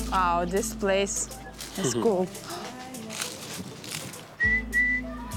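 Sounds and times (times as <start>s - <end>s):
speech: 0.2s - 2.4s
person whistling imitation of goldfinch call: 4.4s - 5.1s.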